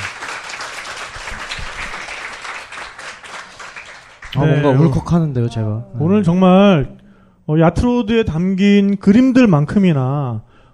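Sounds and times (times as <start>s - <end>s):
audience applause: 0.0s - 4.4s
speech: 4.4s - 10.5s.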